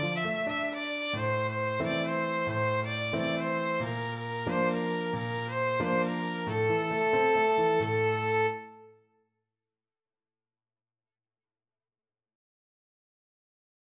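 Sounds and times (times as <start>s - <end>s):
violin: 0.0s - 9.0s.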